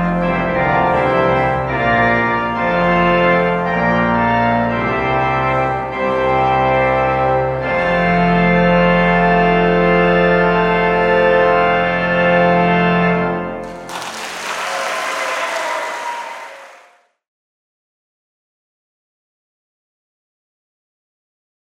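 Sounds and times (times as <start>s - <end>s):
organ: 0.0s - 16.8s.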